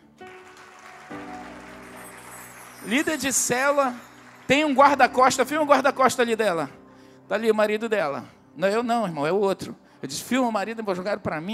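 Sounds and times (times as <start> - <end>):
audience applauding: 0.0 - 5.6
speech: 2.8 - 11.5.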